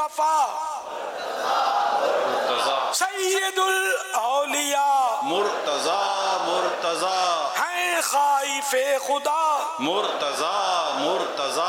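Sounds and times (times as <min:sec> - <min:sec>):
speech: 0:00.1 - 0:01.6, 0:02.9 - 0:11.6
crowd chanting religious slogans in praise of Hazrat Ali: 0:00.6 - 0:02.9, 0:04.3 - 0:11.6.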